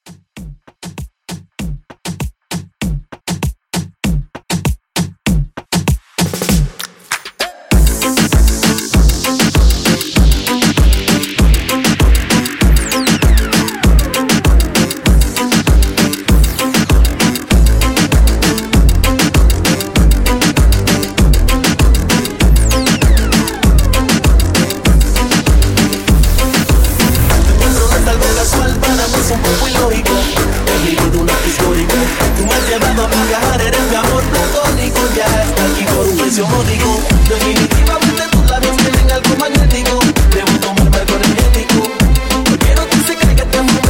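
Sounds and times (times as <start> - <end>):
reggaeton music at 98 BPM: 0.0 - 43.8.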